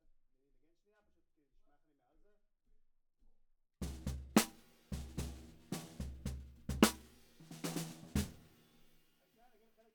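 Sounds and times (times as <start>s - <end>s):
snare drum: 3.8s - 8.9s.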